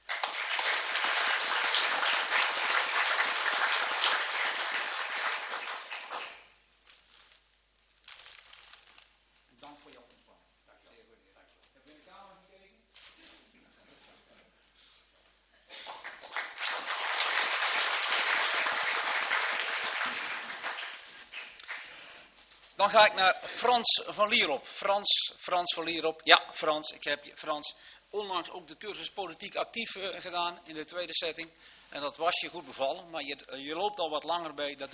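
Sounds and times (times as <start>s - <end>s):
audience applause: 0.0s - 6.5s, 15.8s - 22.1s
speech: 22.8s - 34.9s.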